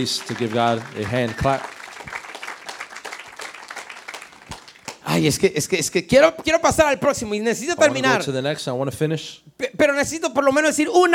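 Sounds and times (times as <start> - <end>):
speech: 0.0 - 1.8, 5.2 - 11.1
audience applause: 0.0 - 5.3.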